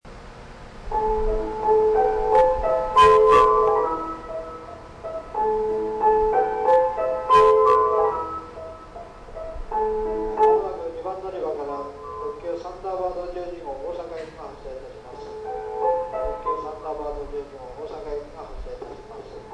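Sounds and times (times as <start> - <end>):
melody: 0.9 - 12.6, 15.0 - 17.1.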